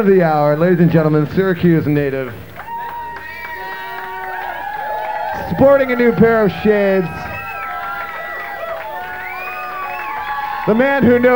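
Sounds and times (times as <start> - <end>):
speech: 0.0 - 2.5, 5.4 - 7.2, 10.6 - 11.3
crowd cheering and applauding: 2.1 - 11.3
high whoops: 2.6 - 11.3.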